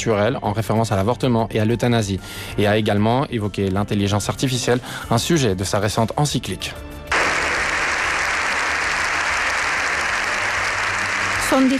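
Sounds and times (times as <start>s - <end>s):
speech: 0.0s - 7.0s, 11.5s - 11.7s
parliament applause ovation: 7.1s - 11.7s.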